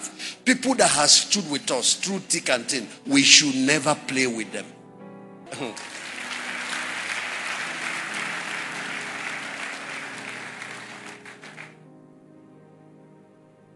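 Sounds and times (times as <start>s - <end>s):
speech: 0.5s - 4.8s, 5.6s - 6.0s
large audience applause: 5.6s - 11.8s.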